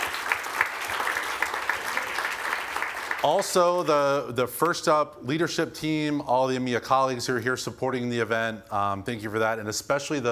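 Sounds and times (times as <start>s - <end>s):
audience applause: 0.0s - 3.7s
speech: 3.2s - 10.3s.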